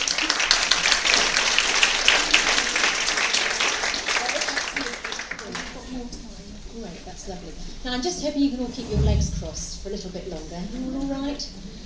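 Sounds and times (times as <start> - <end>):
audience applause greeting a speaker taking the floor: 0.0 - 5.8
speech: 7.3 - 11.7.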